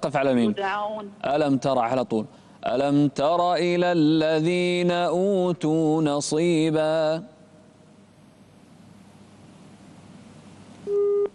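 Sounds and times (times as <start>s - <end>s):
speech: 0.0s - 7.3s
phone line tone after a call disconnects: 10.9s - 11.3s.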